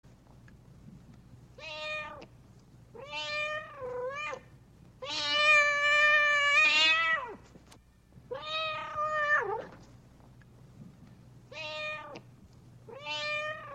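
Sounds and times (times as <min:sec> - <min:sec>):
cat meowing: 0:03.0 - 0:04.4, 0:05.0 - 0:07.4, 0:08.3 - 0:09.7, 0:11.5 - 0:12.2, 0:12.9 - 0:13.7.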